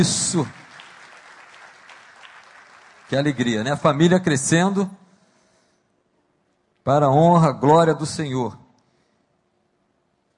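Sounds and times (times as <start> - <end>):
speech: 0.0 - 0.6, 3.1 - 5.0, 6.8 - 8.6
audience applause: 0.0 - 4.2.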